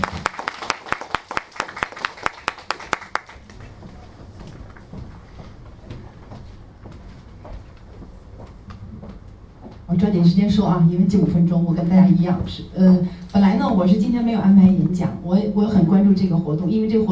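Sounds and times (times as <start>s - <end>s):
audience applause: 0.0s - 4.9s
speech: 10.0s - 17.1s.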